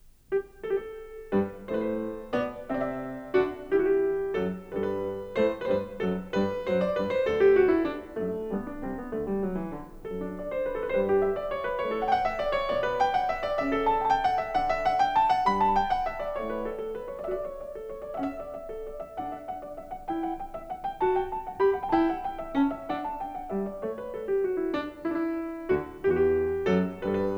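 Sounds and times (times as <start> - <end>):
keyboard suite: 0.0 - 27.3.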